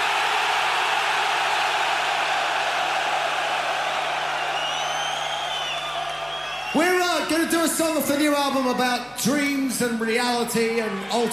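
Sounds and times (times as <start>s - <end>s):
huge stadium crowd of metal fans screaming: 0.0s - 7.9s, 10.4s - 11.3s
shrill whistles: 4.2s - 7.0s
speech: 6.8s - 11.3s.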